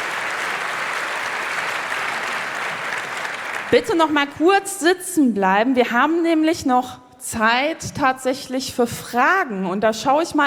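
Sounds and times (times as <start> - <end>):
audience applause: 0.0 - 4.0
speech: 3.7 - 10.4.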